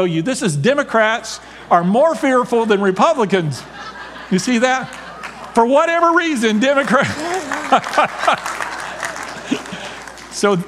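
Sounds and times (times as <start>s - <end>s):
speech: 0.0s - 5.0s, 5.6s - 8.6s, 10.4s - 10.6s
laughter: 1.8s - 10.6s
audience applause: 4.9s - 5.6s, 6.5s - 10.6s.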